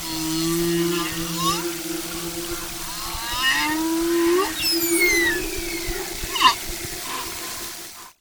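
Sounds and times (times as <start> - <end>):
humpback whale song: 0.0 - 8.1.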